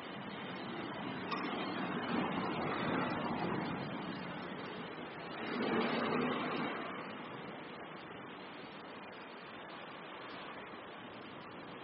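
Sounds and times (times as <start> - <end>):
car park ambience: 0.0 - 11.8.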